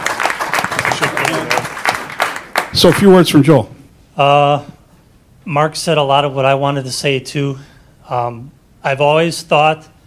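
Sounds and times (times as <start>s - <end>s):
group clapping for a colleague leaving for a new job: 0.0s - 3.3s
speech: 2.7s - 4.8s, 5.4s - 9.9s.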